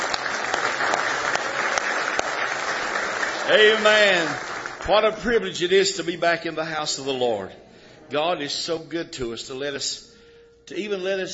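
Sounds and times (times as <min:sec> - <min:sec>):
audience hand clapping: 0:00.0 - 0:05.5
speech: 0:03.5 - 0:10.1, 0:10.7 - 0:11.3.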